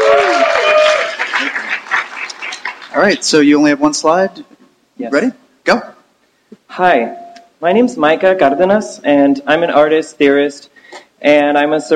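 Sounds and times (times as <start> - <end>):
high falling whoop: 0.0 - 1.2
audience applause: 0.0 - 3.5
speech: 3.0 - 5.9, 6.7 - 11.9.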